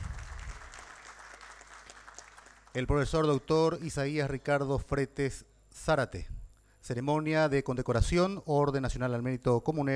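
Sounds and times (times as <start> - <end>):
audience applause: 0.0 - 2.8
speech: 2.8 - 9.9.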